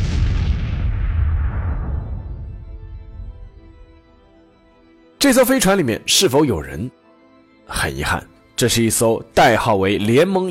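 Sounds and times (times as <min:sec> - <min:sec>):
huge explosion: 0:00.0 - 0:04.0
speech: 0:05.2 - 0:07.0, 0:07.7 - 0:10.4.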